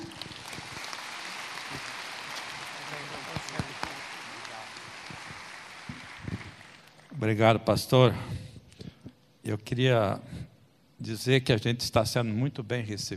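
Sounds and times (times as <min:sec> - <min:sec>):
audience applause: 0:00.0 - 0:07.1
speech: 0:07.2 - 0:08.4, 0:09.5 - 0:13.1.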